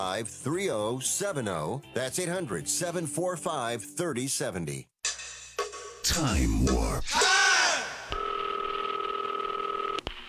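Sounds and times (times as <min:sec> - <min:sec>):
speech: 0:00.0 - 0:04.9, 0:06.0 - 0:07.3
telephone keypad dialing tone: 0:08.2 - 0:10.0.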